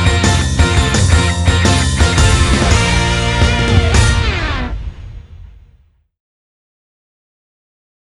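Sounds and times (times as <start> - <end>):
instrumental music: 0.0 - 5.5.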